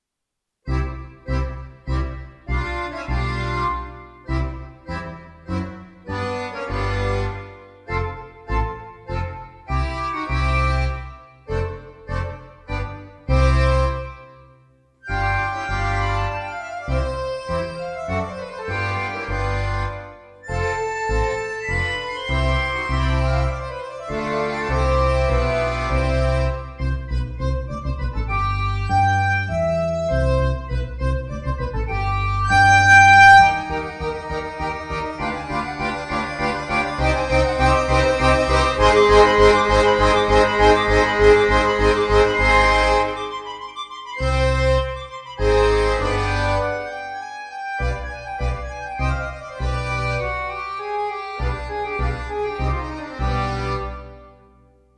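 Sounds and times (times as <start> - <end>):
accordions: 0.7 - 54.9.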